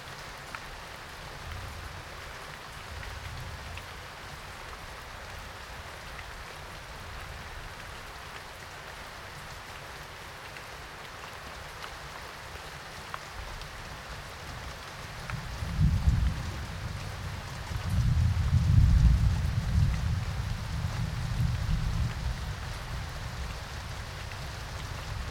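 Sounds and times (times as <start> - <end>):
thunderstorm: 15.3 - 25.2.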